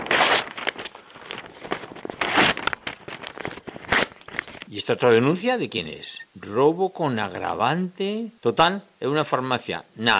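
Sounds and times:
paper document being torn up: 0.0s - 4.6s
speech: 4.7s - 10.1s.

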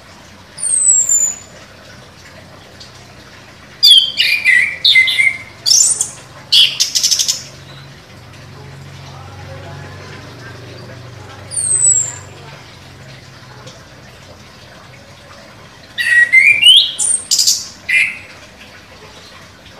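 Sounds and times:
orange-headed thrush singing vigorously with whistled phrases and chirps: 3.8s - 7.4s, 11.5s - 12.4s, 16.0s - 18.3s.

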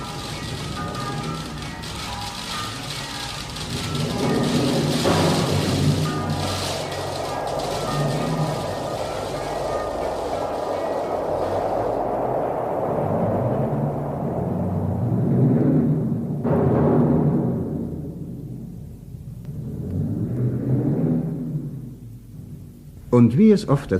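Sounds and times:
hail pelting down over fields: 0.0s - 14.1s
deep thunder rolling: 0.0s - 23.1s
speech: 23.2s - 23.9s.

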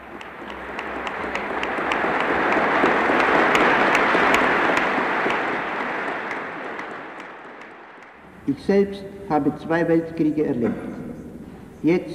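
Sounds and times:
audience applauding an award presentation: 0.0s - 8.3s
speech: 8.5s - 11.0s, 11.8s - 12.1s.

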